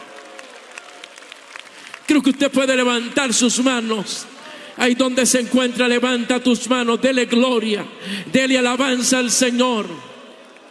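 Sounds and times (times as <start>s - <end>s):
audience applause: 0.0s - 3.4s
speech: 2.1s - 10.1s.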